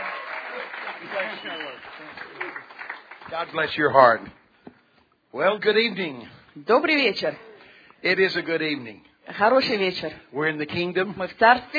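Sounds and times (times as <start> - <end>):
church audience applauding to welcome the final minister: 0.0 - 4.2
speech: 1.0 - 4.4, 5.3 - 11.7.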